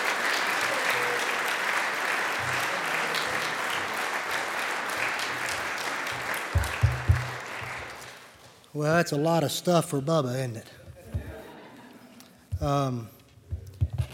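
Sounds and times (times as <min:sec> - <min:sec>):
audience applause welcoming Dr. Harold Graves, Jr.: 0:00.0 - 0:08.4
speech: 0:08.8 - 0:10.8, 0:12.6 - 0:13.2.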